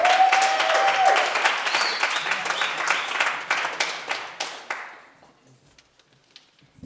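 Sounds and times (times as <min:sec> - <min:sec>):
audience applause: 0:00.0 - 0:05.1.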